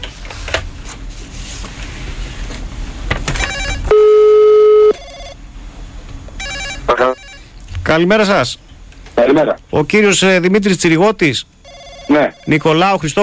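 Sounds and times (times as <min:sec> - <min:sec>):
telephone ringing: 0:03.4 - 0:05.4, 0:06.4 - 0:07.5, 0:11.6 - 0:12.8
speech: 0:08.0 - 0:13.2.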